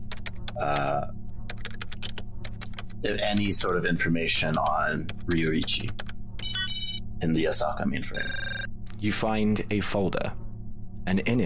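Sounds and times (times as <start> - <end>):
search being typed on a computer keyboard: 0.0 - 3.6, 4.4 - 6.7
speech: 0.6 - 1.2, 3.0 - 6.1, 7.2 - 10.4, 11.1 - 11.4.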